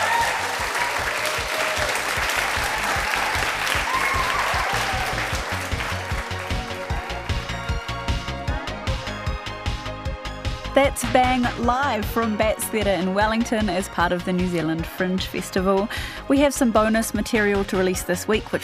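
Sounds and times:
theatre audience applause: 0.0 - 8.2
music with steady beat: 2.4 - 18.5
speech: 10.8 - 18.6.

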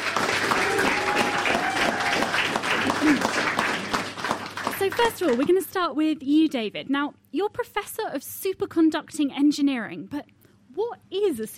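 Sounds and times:
audience applause: 0.0 - 5.5
speech: 4.9 - 11.5.

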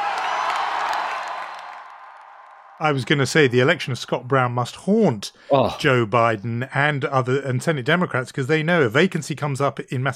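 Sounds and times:
large crowd cheering: 0.0 - 4.0
speech: 2.8 - 10.1.

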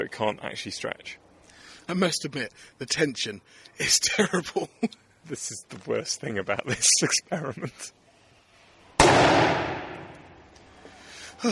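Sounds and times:
speech: 0.0 - 1.2, 1.8 - 8.0
2-litre plastic lemonade bottle bursting from liquid nitrogen pressure: 9.0 - 10.2.

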